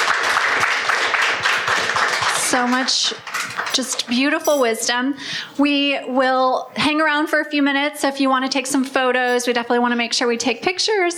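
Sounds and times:
crowd applauding: 0:00.0 - 0:03.8
speech: 0:02.6 - 0:11.1.

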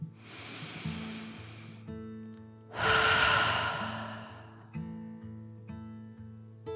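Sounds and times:
deep breath in and out: 0:00.1 - 0:01.9, 0:02.7 - 0:04.8.

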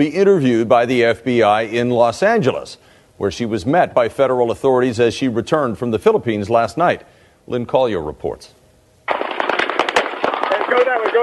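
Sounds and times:
speech: 0:00.0 - 0:09.2
rapid gunfire from police body camera: 0:09.1 - 0:11.2.

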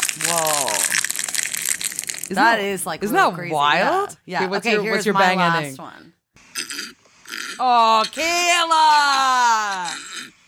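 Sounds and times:
brittle boiled eggshells crunched in a hand: 0:00.0 - 0:02.6
speech: 0:00.2 - 0:01.1, 0:02.3 - 0:07.0, 0:07.6 - 0:10.3.

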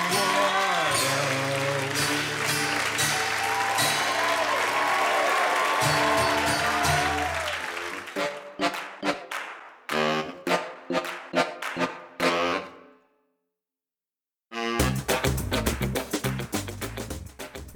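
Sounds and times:
music: 0:00.0 - 0:05.0, 0:05.7 - 0:13.4, 0:14.5 - 0:17.7
audience applause: 0:00.0 - 0:10.0.

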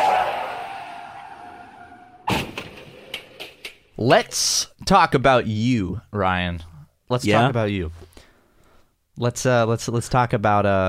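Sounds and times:
car crash sound effect: 0:00.0 - 0:03.6
speech: 0:04.0 - 0:08.1, 0:09.2 - 0:10.8.

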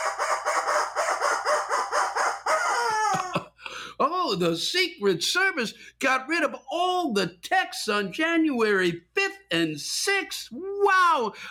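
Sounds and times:
rubber chicken toy squawking: 0:00.0 - 0:03.3
speech: 0:04.3 - 0:11.4.

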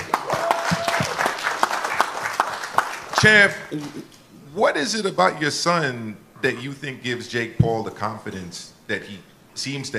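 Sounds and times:
crowd clapping: 0:00.0 - 0:03.6
speech: 0:03.2 - 0:09.9.

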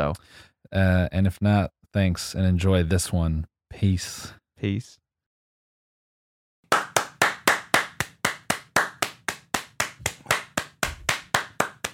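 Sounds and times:
speech: 0:00.0 - 0:05.0
hands clapping in a quick steady rhythm: 0:06.7 - 0:11.9.

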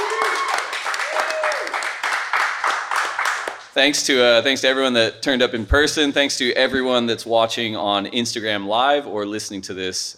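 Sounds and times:
voices and whoops: 0:00.0 - 0:01.9
crowd applauding: 0:00.0 - 0:03.8
speech: 0:03.8 - 0:10.1.

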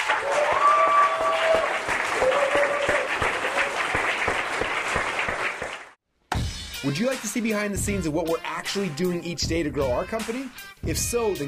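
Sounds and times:
whoops and cheers: 0:00.0 - 0:04.0
crowd round of applause: 0:00.0 - 0:06.0
speech: 0:06.8 - 0:11.4.

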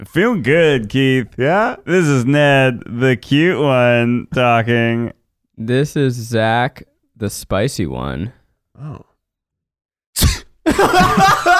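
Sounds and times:
speech: 0:00.0 - 0:09.1, 0:10.2 - 0:11.5
sneeze: 0:10.2 - 0:10.6
laughter: 0:10.7 - 0:11.5.

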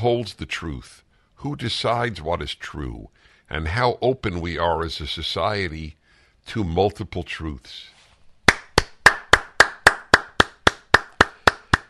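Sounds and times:
speech: 0:00.0 - 0:07.9
single person clapping hands: 0:08.5 - 0:11.8.

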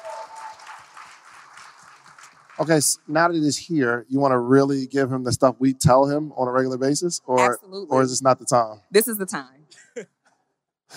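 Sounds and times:
audience applauding: 0:00.0 - 0:03.1
speech: 0:02.6 - 0:10.2.

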